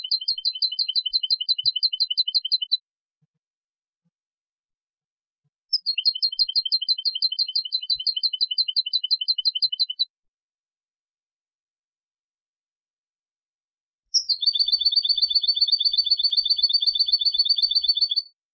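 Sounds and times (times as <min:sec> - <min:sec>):
European goldfinch twittering: 0:00.0 - 0:02.8, 0:05.7 - 0:10.1, 0:14.2 - 0:18.3.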